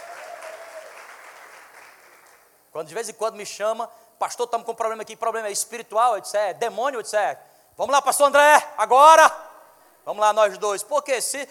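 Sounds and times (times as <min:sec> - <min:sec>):
audience applause: 0:00.0 - 0:02.5
speech: 0:02.8 - 0:09.4, 0:10.1 - 0:11.4.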